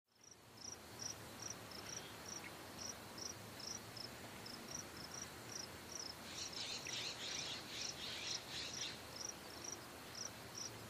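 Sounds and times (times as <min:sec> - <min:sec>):
cicada chirping: 0:00.2 - 0:04.1, 0:04.7 - 0:10.8.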